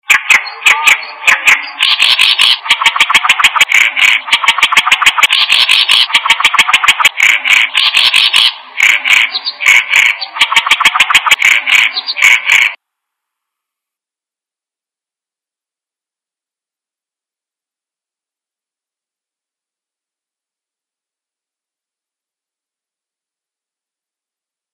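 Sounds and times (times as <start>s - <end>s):
unfamiliar bird calling: 0.1s - 12.8s.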